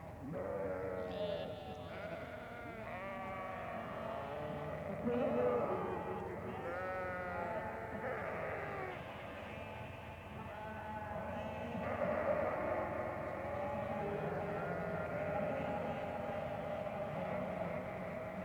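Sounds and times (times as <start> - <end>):
sheep bleating: 0.4 - 9.7, 10.5 - 18.4.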